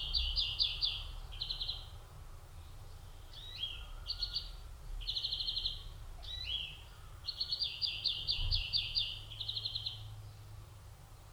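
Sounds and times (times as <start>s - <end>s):
European greenfinch Chloris chloris singing rapid trilled notes and rattles: 0.0s - 1.9s, 3.3s - 10.4s.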